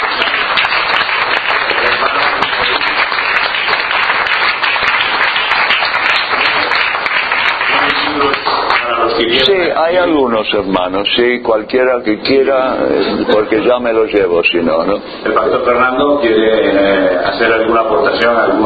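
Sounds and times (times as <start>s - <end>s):
audience clapping: 0.0s - 9.6s
speech: 9.3s - 18.6s.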